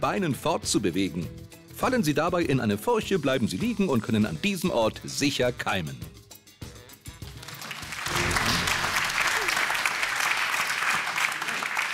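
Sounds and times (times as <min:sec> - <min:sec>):
speech: 0:00.0 - 0:06.1
audience applause: 0:07.4 - 0:11.9.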